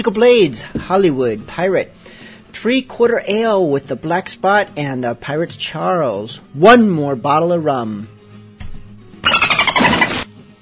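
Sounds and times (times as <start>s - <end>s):
speech: 0.0s - 2.0s, 2.6s - 8.1s
dolphin squeal sound effect: 9.2s - 10.3s.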